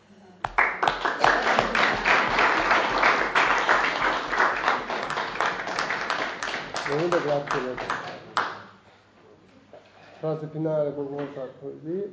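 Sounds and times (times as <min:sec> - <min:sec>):
audience applause: 0:00.5 - 0:08.6
speech: 0:06.9 - 0:08.0, 0:10.2 - 0:12.1.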